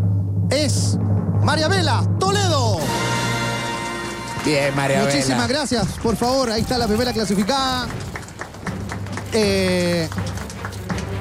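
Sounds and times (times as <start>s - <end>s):
speech: 0.5s - 3.0s, 4.4s - 8.1s, 9.3s - 10.3s
spontaneous applause from audience: 2.9s - 11.2s.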